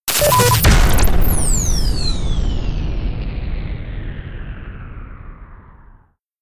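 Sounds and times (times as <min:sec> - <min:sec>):
impact: 0:00.6 - 0:06.0.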